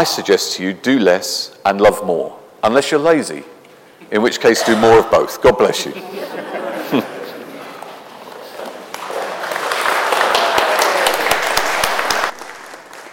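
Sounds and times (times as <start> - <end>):
speech: 0.0 - 7.1
laughter: 4.1 - 8.8
audience applauding after a sermon: 7.7 - 13.1.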